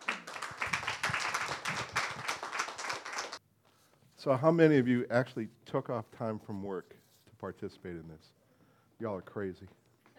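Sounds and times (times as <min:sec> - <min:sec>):
church conference audience applauding to welcome a pastor: 0:00.0 - 0:03.4
speech: 0:04.2 - 0:08.4, 0:09.0 - 0:09.8.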